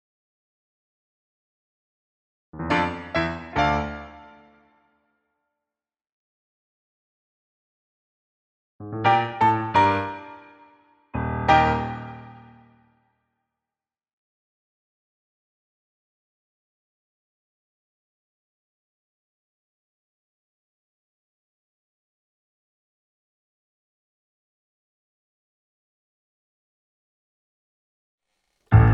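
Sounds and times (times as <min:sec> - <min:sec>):
music without violin intro: 0:02.6 - 0:05.8, 0:08.8 - 0:13.6, 0:28.7 - 0:28.9.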